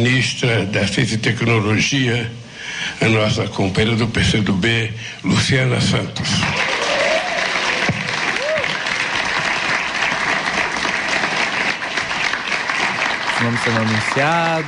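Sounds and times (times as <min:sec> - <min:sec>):
speech: 0:00.0 - 0:06.6, 0:13.4 - 0:14.6
audience applause and cheering: 0:06.4 - 0:14.6.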